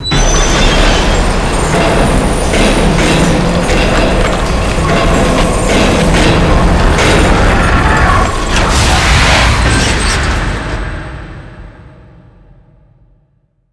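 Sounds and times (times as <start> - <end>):
train ride: 0.0 - 11.9.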